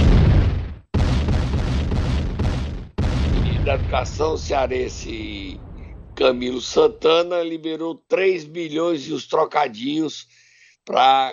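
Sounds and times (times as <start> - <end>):
MOAB bomb explosion sound effect: 0.0 - 7.2
speech: 3.7 - 11.3.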